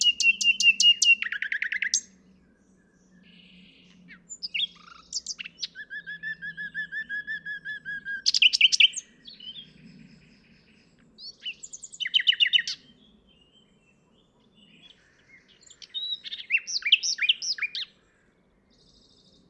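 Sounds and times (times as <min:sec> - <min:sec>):
common nightingale song: 0:00.0 - 0:19.4.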